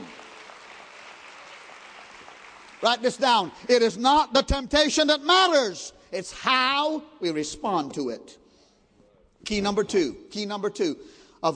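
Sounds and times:
audience hand clapping: 0.0s - 3.6s
speech: 2.8s - 8.4s, 9.4s - 11.5s.

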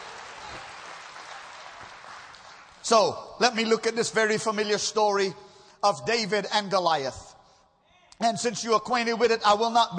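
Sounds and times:
audience applauding, hand clapping: 0.0s - 3.2s
speech: 2.9s - 7.3s, 8.2s - 9.9s.

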